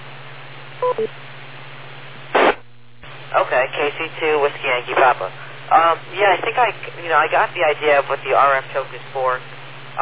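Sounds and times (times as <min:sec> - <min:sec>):
radio beep tone: 0:00.8 - 0:01.1
speech: 0:00.9 - 0:01.3, 0:03.5 - 0:10.0.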